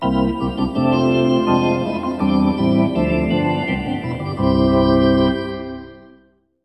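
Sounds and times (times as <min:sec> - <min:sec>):
hockey arena organ: 0:00.0 - 0:06.2.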